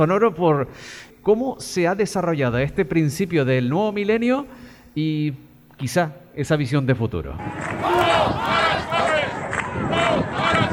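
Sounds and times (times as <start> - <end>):
speech: 0.0 - 8.5
large protest crowd chanting a slogan: 7.4 - 10.7.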